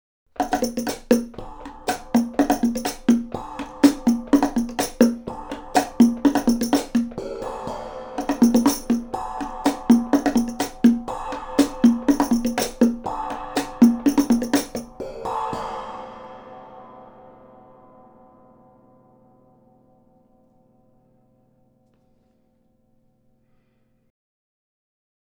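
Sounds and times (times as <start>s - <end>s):
percussion: 0.3s - 17.5s.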